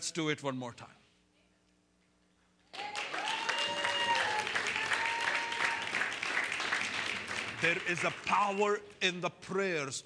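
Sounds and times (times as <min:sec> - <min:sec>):
speech: 0:00.1 - 0:01.0, 0:07.6 - 0:10.0
people clapping: 0:02.7 - 0:08.8.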